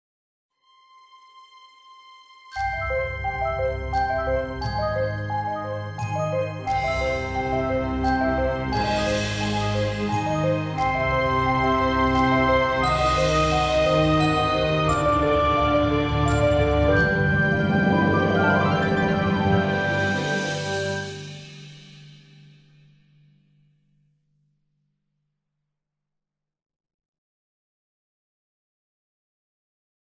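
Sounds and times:
overture: 0:01.0 - 0:22.4.

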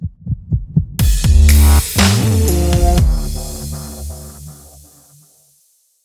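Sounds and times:
hard music stinger: 0:01.0 - 0:04.9.

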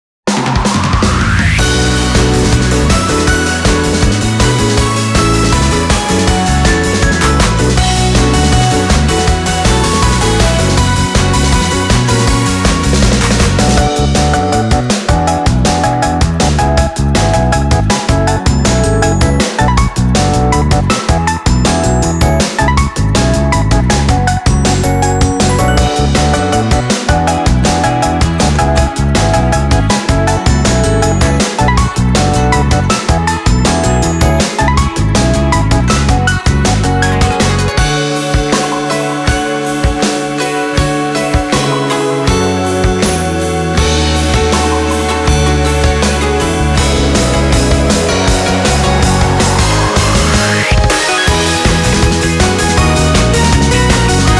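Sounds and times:
instrumental music: 0:00.3 - 0:54.3.

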